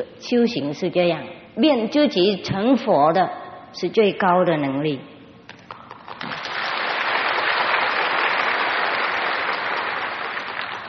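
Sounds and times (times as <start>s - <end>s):
speech: 0.0s - 5.1s
crowd applauding: 6.1s - 10.8s.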